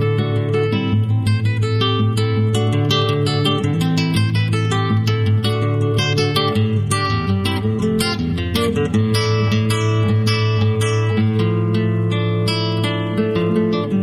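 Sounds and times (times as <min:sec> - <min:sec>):
classical acoustic guitar playing: 0:00.0 - 0:14.0.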